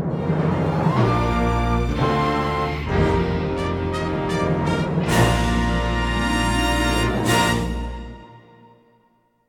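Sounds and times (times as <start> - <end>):
fanfare: 0.1 - 9.0.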